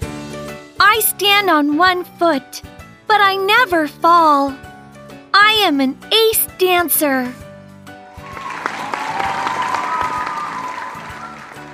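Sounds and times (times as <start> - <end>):
speech: 0.9 - 4.7, 5.4 - 7.4
audience clapping and shouting: 8.2 - 11.7.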